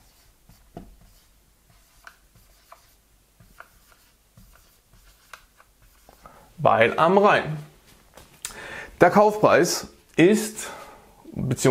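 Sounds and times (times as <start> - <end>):
handwriting scratching strokes: 0.0 - 6.2
speech: 6.6 - 7.7, 9.0 - 10.8, 11.4 - 11.6.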